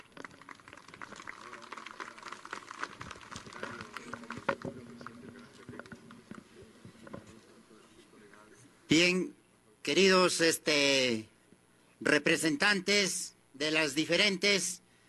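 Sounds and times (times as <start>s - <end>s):
audience applause: 0.0s - 6.1s
speech: 8.9s - 11.3s, 12.0s - 14.8s.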